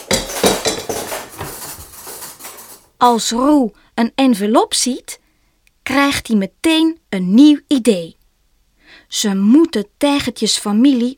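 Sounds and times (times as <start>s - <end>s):
cupboard contents crashing down: 0.0s - 2.9s
speech: 3.0s - 5.2s, 5.9s - 8.2s, 9.1s - 11.1s.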